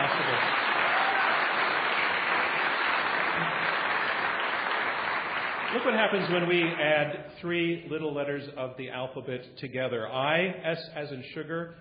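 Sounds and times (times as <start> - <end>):
audience applause: 0.0 - 6.8
speech: 5.7 - 11.7.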